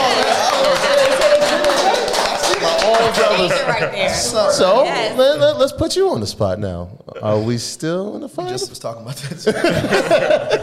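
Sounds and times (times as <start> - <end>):
crowd applauding: 0.0 - 3.9
laughter: 0.0 - 5.4, 8.4 - 10.6
speech: 3.8 - 10.6.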